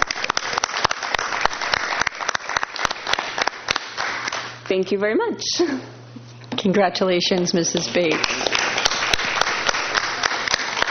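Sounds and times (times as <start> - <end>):
crowd applause: 0.0 - 4.5, 8.1 - 10.8
speech: 4.7 - 6.0, 6.6 - 8.6.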